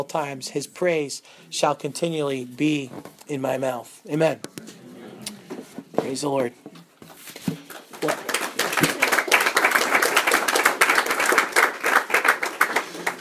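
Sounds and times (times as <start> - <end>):
speech: 0.0 - 4.8, 6.1 - 6.8
murmur of voice: 4.5 - 5.8
brisk theatrical hand clapping: 7.6 - 13.1.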